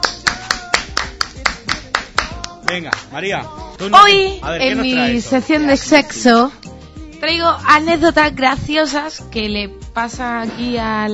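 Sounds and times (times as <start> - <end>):
one person clapping along during a comedy bit: 0.0 - 3.1
speech: 2.7 - 6.6, 7.2 - 11.1.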